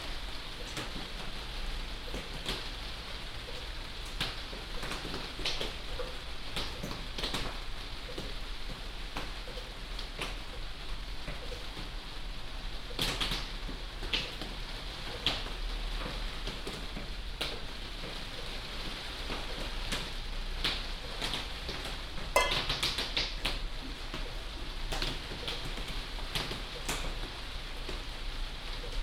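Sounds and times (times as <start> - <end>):
binaural rain drips: 0.0 - 29.0.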